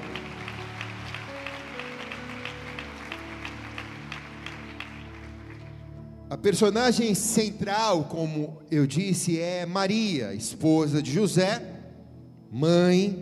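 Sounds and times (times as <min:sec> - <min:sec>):
audience applause: 0:00.0 - 0:05.8
speech: 0:06.3 - 0:11.8, 0:12.5 - 0:13.1.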